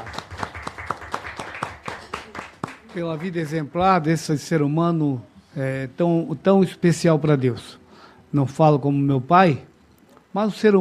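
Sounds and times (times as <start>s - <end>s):
rhythmic clapping at a church gathering honouring a late father: 0.0s - 3.9s
speech: 2.9s - 9.7s, 10.3s - 10.8s.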